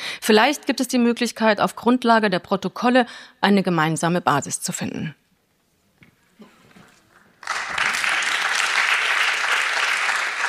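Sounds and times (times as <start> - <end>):
speech: 0.2 - 5.2
audience clapping: 6.8 - 10.4.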